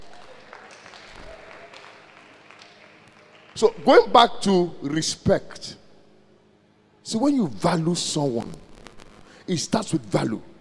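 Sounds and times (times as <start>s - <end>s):
audience clapping: 0.0s - 4.2s
speech: 3.6s - 5.8s, 7.1s - 8.6s, 9.5s - 10.5s.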